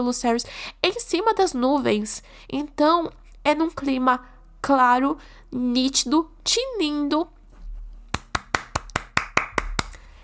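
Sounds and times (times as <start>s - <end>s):
speech: 0.0s - 7.4s
hands clapping: 8.1s - 10.1s.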